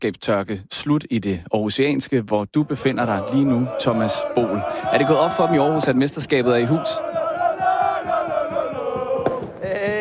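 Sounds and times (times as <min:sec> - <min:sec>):
speech: 0:00.0 - 0:07.2
crowd chanting and roaring: 0:02.6 - 0:09.9
rhythmic clapping or stamping: 0:03.8 - 0:09.9.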